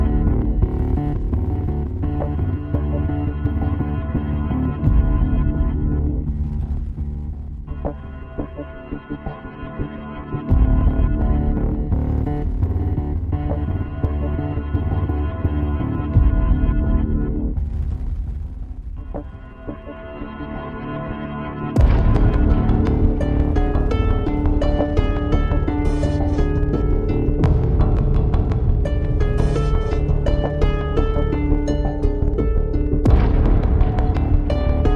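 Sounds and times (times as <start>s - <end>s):
synth bass: 0.0s - 34.9s
harp: 21.7s - 34.9s.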